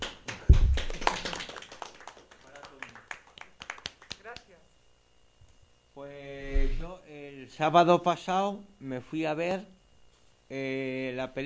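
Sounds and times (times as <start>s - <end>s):
small group applause: 0.0s - 4.5s
heavy thump: 0.5s - 0.9s
speech: 7.4s - 9.8s, 10.5s - 11.4s.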